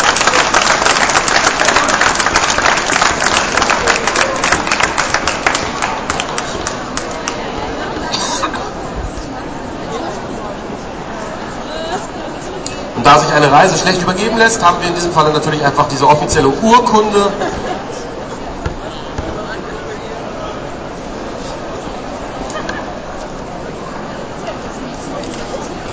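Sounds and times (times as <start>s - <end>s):
audience applause: 0.0s - 7.8s
crowd chatter: 0.0s - 25.9s
laughter: 7.7s - 9.0s, 17.0s - 18.6s, 22.3s - 23.4s
speech: 13.4s - 17.4s.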